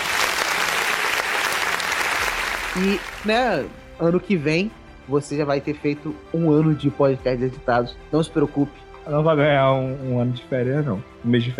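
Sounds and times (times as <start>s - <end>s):
applause: 0.0s - 3.6s
speech: 2.8s - 11.5s.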